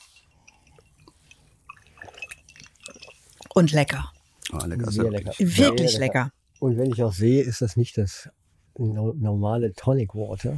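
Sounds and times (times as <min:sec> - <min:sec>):
ice cubes clinking: 0:00.0 - 0:04.0
speech: 0:03.6 - 0:10.5.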